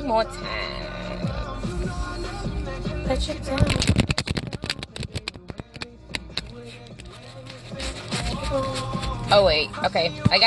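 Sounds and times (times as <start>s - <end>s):
speech: 0.0s - 2.0s, 3.1s - 4.0s, 8.5s - 10.4s
playing cards being shuffled: 3.5s - 9.4s.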